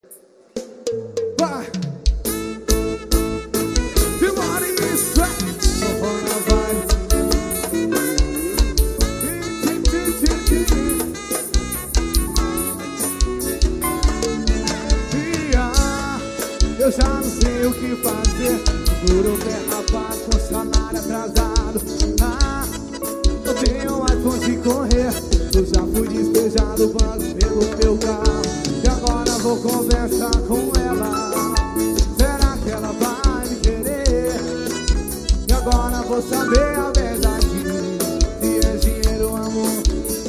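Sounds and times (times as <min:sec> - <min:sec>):
forró music: 0:00.1 - 0:40.2.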